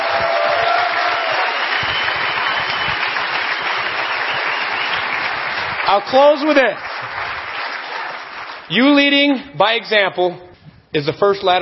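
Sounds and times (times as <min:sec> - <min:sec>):
crowd applauding: 0:00.0 - 0:08.9
faint whistle: 0:01.6 - 0:05.2
speech: 0:05.9 - 0:07.2, 0:08.7 - 0:11.6.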